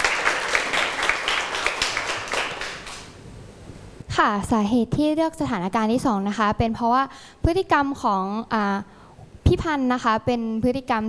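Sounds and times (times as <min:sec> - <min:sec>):
group of students clapping: 0:00.0 - 0:03.2
speech: 0:04.2 - 0:11.0.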